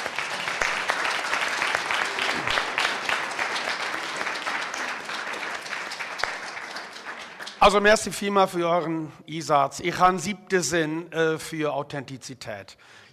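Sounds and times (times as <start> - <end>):
dense audience applause: 0.0 - 8.0
speech: 7.6 - 13.1.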